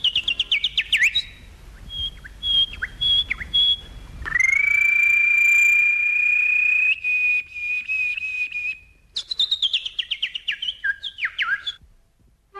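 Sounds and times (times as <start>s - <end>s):
small birds chirping in quick high trills: 0.0s - 11.8s
long steady high whistled tone: 4.3s - 8.8s.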